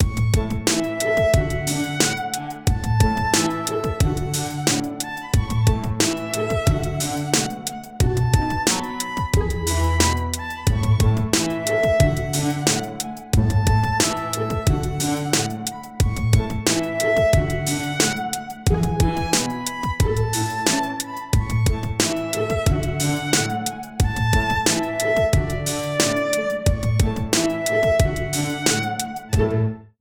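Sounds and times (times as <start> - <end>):
lyrical violin: 0.0 - 29.9.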